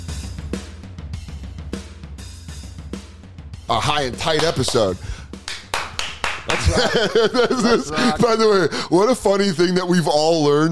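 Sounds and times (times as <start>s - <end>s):
speech: 3.7s - 5.2s, 6.4s - 10.7s
hand claps marking the start of a recording session: 4.1s - 7.3s
laughter: 6.0s - 9.2s.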